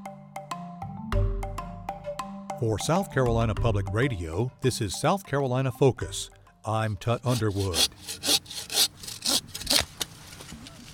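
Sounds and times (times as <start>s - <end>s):
speech: 2.6s - 8.7s
saw cutting down a tree: 7.1s - 10.0s.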